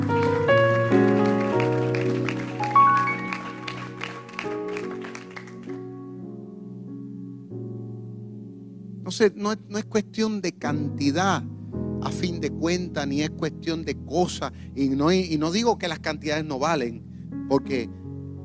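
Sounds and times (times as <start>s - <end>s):
audience applause: 0.0s - 5.9s
speech: 9.2s - 18.0s.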